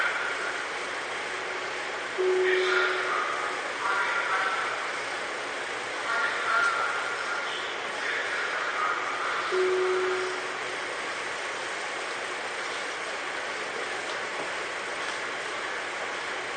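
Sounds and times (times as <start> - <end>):
Tobu 9000 series train running with rushing roar: 0.0 - 16.5
short low hum: 2.2 - 4.9, 9.5 - 12.1.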